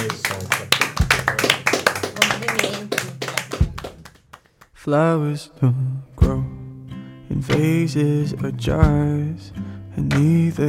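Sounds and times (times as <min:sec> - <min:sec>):
audience applause: 0:00.0 - 0:04.6
speech: 0:04.8 - 0:06.5, 0:07.4 - 0:10.6.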